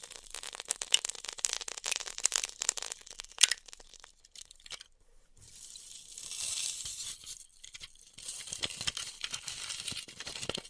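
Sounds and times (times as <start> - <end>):
styrofoam cut with a heated wire: 0.0 - 4.3, 8.2 - 10.6.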